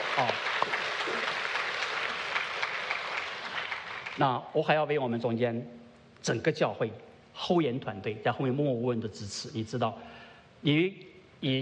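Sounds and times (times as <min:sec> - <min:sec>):
church congregation applauding volunteer workers and host families: 0:00.0 - 0:04.4
speech: 0:00.2 - 0:00.4, 0:04.2 - 0:11.6.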